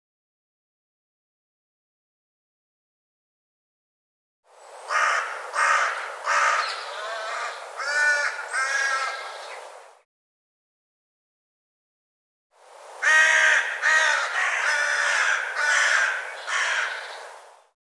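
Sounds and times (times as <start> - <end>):
bird caws harsh and nasal: 4.9 - 9.6, 13.0 - 17.4.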